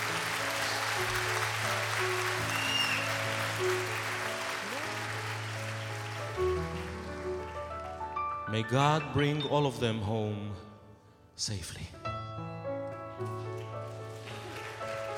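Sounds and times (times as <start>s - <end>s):
audience clapping: 0.0s - 8.5s, 13.1s - 15.1s
speech: 8.5s - 10.7s, 11.4s - 12.0s.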